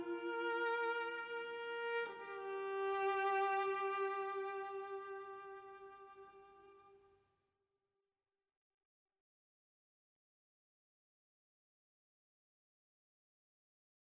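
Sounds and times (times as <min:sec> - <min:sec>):
slow expressive cello solo: 0:00.0 - 0:07.0.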